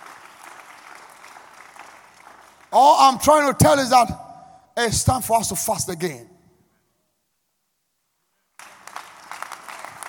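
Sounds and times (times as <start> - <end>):
audience clapping: 0.0 - 3.5, 8.6 - 10.0
speech: 2.7 - 4.2, 4.8 - 6.3.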